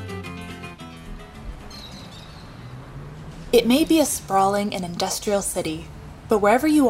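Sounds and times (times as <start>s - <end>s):
steady urban hum: 0.0s - 6.8s
birds chirping in a city: 0.8s - 5.4s
speech: 3.5s - 6.8s.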